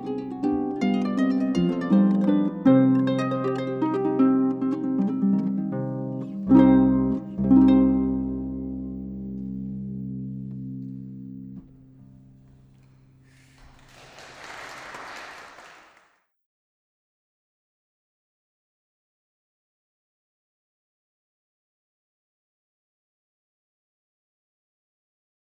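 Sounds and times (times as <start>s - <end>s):
medium-small harp playing: 0.0s - 11.8s.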